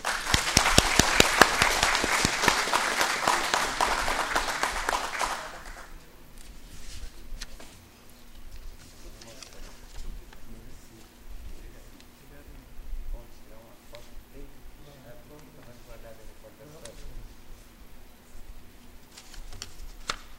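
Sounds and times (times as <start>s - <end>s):
crowd applauding: 0.0s - 6.0s.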